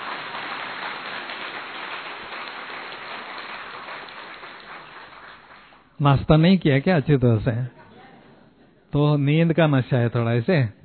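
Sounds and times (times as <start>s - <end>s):
crowd applause: 0.0s - 5.8s
speech: 6.0s - 7.8s, 8.9s - 10.8s.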